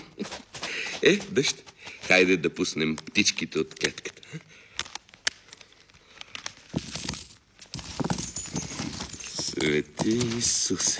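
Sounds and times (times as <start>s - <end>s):
speech: 1.0s - 4.5s, 9.8s - 10.9s
coins dropping and clinking: 6.7s - 10.9s.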